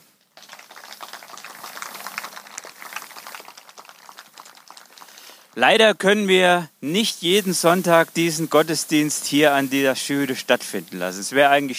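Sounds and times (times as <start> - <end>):
crowd applauding: 0.3 - 5.6
speech: 5.6 - 11.7.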